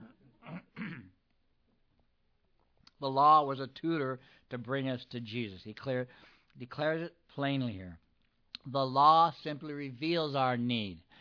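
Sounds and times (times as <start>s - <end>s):
man clearing throat: 0.0s - 1.2s
speech: 3.0s - 8.0s, 8.6s - 11.1s.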